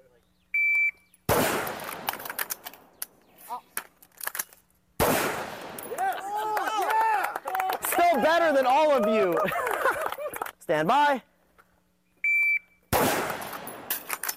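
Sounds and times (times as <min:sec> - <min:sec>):
shot timer beep: 0:00.6 - 0:01.0, 0:12.2 - 0:12.8
Glock pistol and rifle gunshots during drills: 0:01.3 - 0:02.6, 0:05.0 - 0:06.0, 0:12.9 - 0:14.2
laughter: 0:05.9 - 0:10.6
speech: 0:08.2 - 0:09.6, 0:10.7 - 0:11.3.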